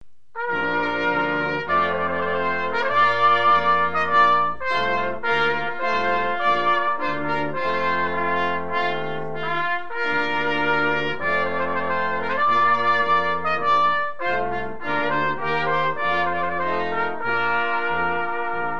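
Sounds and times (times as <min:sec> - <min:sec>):
trumpet piece: 0:00.3 - 0:18.7.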